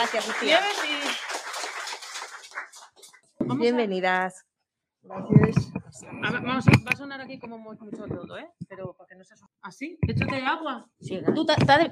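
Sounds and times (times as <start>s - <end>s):
speech: 0.0s - 1.3s, 3.5s - 4.4s, 5.0s - 11.9s
short round of applause: 0.0s - 3.1s.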